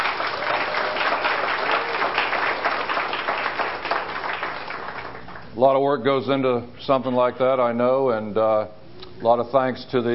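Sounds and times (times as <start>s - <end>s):
audience applause: 0.0s - 5.5s
speech: 5.6s - 10.1s.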